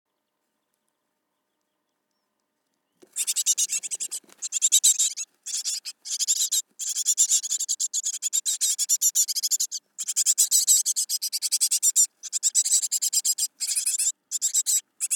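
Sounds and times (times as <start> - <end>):
Great tit Parus major giving harsh buzzy calls: 3.0 - 15.1.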